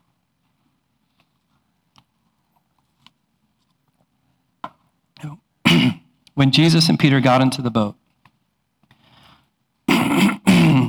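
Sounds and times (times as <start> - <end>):
speech: 5.2 - 5.4, 6.4 - 8.0
throat clearing: 5.2 - 6.1, 9.9 - 10.8.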